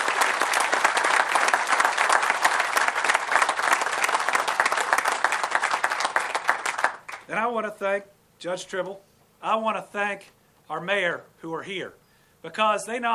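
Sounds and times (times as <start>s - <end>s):
crowd clapping: 0.0s - 7.3s
speech: 7.3s - 13.1s.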